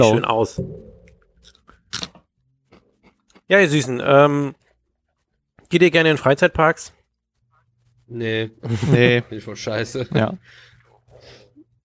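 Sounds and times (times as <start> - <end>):
speech: 0.0 - 0.9, 3.5 - 4.6, 5.7 - 7.0, 8.1 - 11.4
crunching on salted pretzel sticks: 1.5 - 3.5
laughter: 8.6 - 9.3, 9.9 - 10.4.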